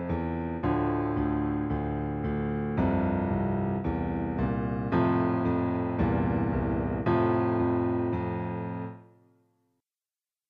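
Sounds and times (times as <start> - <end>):
bass accompaniment music: 0.0 - 8.9.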